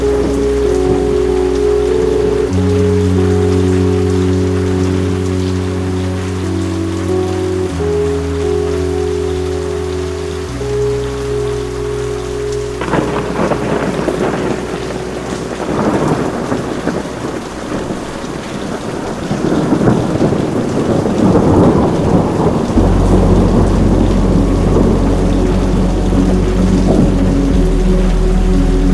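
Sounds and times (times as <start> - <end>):
distant rain: 0.0 - 28.9
sustained low droning tones: 0.0 - 28.9
rumbling thunder: 12.8 - 28.9.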